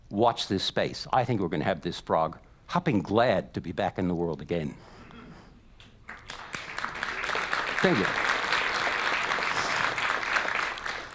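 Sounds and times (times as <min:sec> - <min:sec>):
speech: 0:00.1 - 0:05.0, 0:07.8 - 0:08.3
audience applause: 0:06.1 - 0:11.1.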